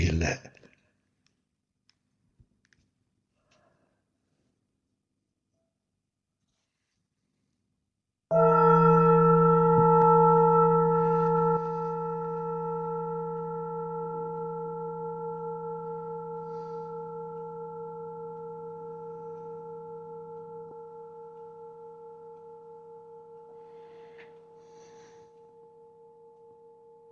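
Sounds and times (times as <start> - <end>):
singing bowl ringing: 8.3 - 27.1.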